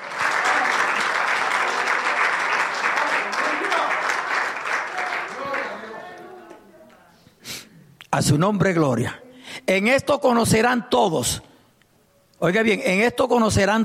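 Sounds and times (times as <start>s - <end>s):
audience applauding: 0.0s - 6.6s
speech: 8.2s - 11.5s, 12.4s - 13.8s.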